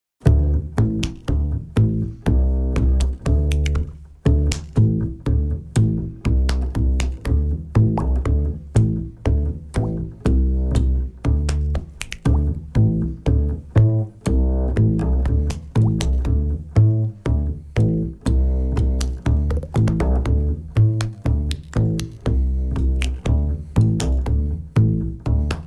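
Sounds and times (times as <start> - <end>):
backing track: 0.2 - 25.6.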